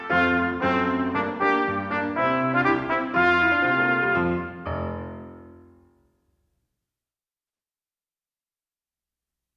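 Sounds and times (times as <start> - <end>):
trumpet performance: 0.0 - 5.0.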